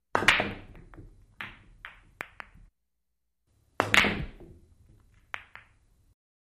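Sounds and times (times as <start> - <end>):
billiard balls banking: 0.1 - 2.7, 3.8 - 5.9.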